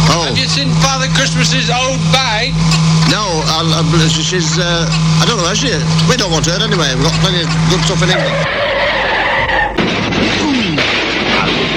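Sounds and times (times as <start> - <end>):
car tyres screeching in a comedy sketch sound effect: 0.0 - 11.7
speech: 0.1 - 8.8
car crash impacts: 9.5 - 11.7.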